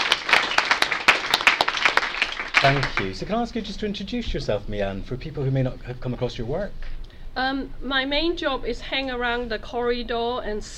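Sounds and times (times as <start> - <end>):
round of applause: 0.0 - 3.2
speech: 2.6 - 10.7.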